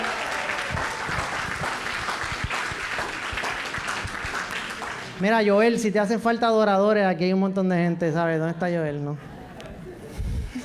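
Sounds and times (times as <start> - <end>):
audience applause: 0.0 - 5.2
speech: 5.2 - 9.3.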